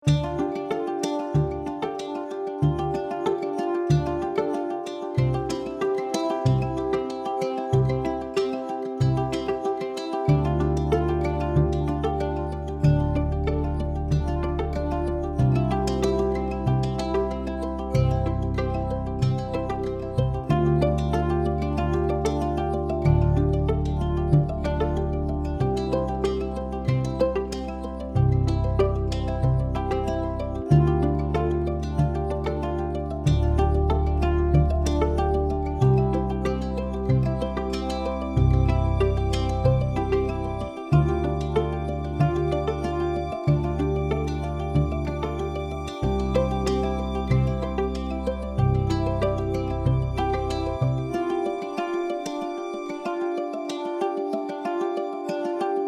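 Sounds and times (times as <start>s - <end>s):
ukulele playing: 0.0s - 55.8s.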